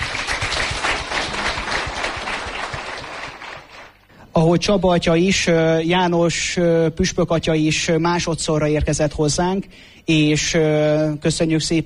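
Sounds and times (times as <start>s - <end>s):
crowd applauding: 0.0s - 4.1s
speech: 4.4s - 11.8s.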